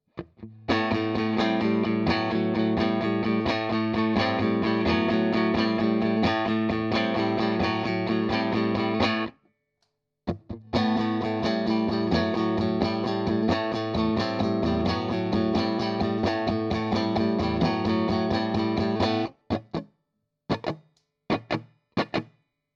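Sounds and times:
guitar through rhythm and lead amp circuit: 0.2s - 9.3s, 10.3s - 19.9s, 20.5s - 22.3s.

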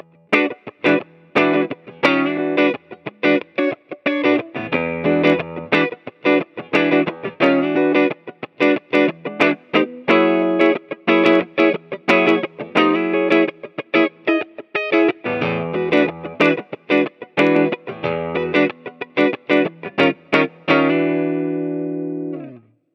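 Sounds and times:
clean Mooer Cab X2 Twinverb 2x12 amp tone: 0.0s - 14.4s, 15.2s - 22.8s.

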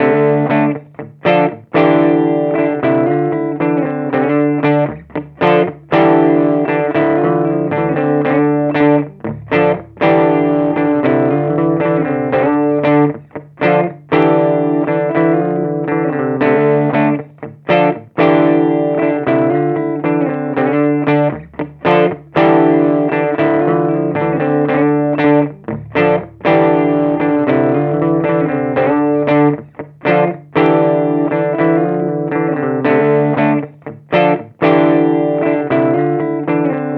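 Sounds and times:
rhythm guitar through Torpedo CAB M preamp: 0.0s - 36.9s.

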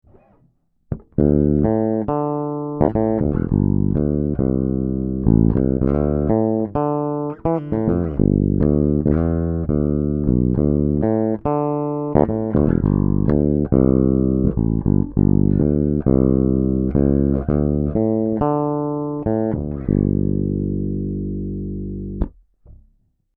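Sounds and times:
Harley Benton BZ 5000 bass with passive bridge pickup played fingerstyle: 0.0s - 23.2s.

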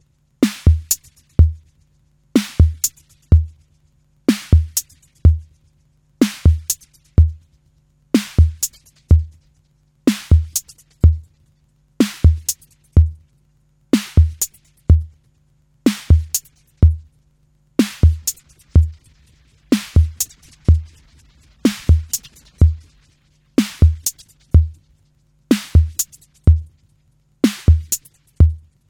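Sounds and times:
TR-606 drum machine through Boss DE-200 digital delay at 160 ms, modulated: 0.4s - 1.7s, 2.4s - 3.6s, 4.3s - 5.6s, 6.2s - 7.5s, 8.2s - 9.5s, 10.1s - 11.4s, 12.0s - 13.2s, 14.0s - 15.2s, 15.9s - 17.1s, 17.8s - 28.8s.

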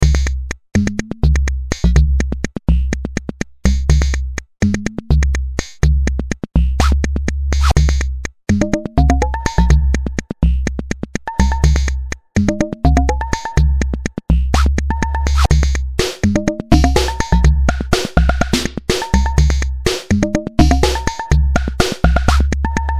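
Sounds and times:
music beat: 0.0s - 22.9s.

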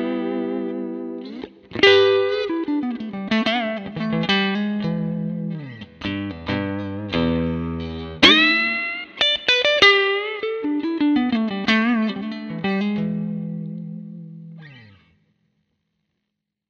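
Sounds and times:
digital guitar sounds through a Fender 53 Bassman amplifier: 0.0s - 15.1s.

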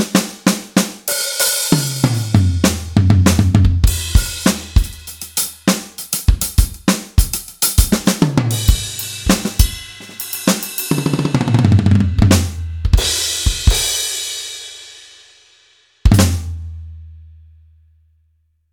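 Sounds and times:
Gewa G5 electronic drum module: 0.0s - 14.0s.

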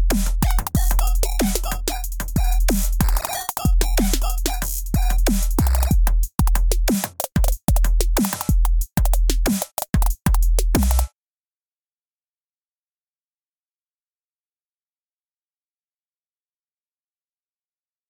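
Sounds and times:
trap beat: 0.0s - 11.1s.

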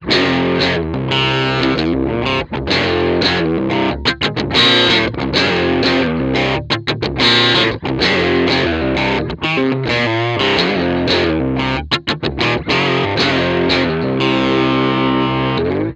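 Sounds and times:
British pop amp sound: 0.0s - 15.9s.

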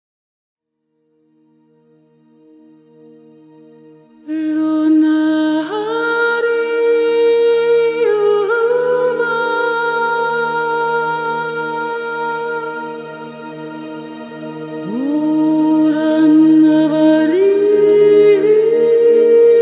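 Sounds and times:
lyrical vocal phrases: 4.3s - 19.5s.

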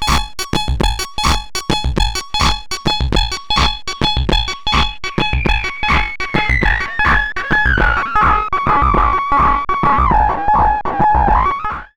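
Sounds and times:
synth loop plus filter: 0.0s - 11.9s.

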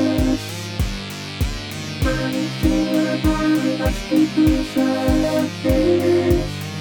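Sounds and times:
vocoder voice: 0.0s - 0.6s, 2.0s - 6.6s.

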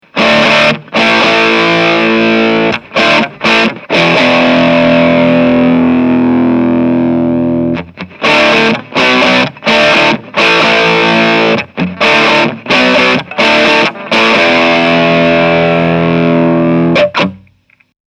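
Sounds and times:
gain stage crunch distortion tone: 0.2s - 17.9s.

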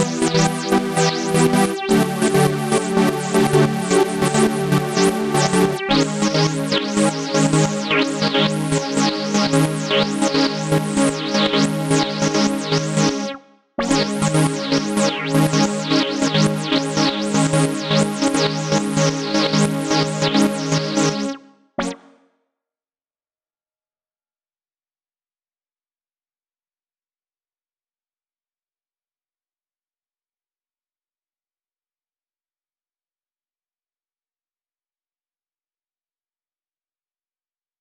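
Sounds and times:
synth pad sequence: 0.0s - 22.1s.

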